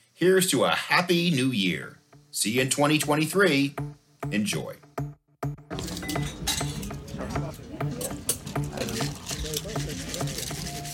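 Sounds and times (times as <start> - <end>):
speech: 0.2 - 4.8
martini glasses clinking: 5.8 - 7.1
cocktail shaker filled with ice: 8.1 - 10.9.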